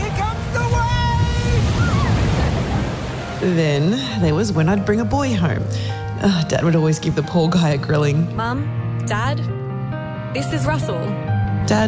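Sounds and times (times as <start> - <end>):
ocean surf: 0.0 - 4.2
speech: 3.4 - 9.6, 10.3 - 11.8.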